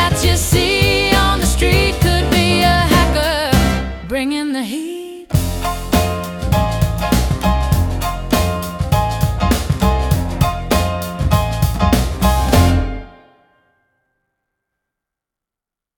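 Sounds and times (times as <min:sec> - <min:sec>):
jazz music: 0:00.0 - 0:04.5, 0:05.3 - 0:13.5.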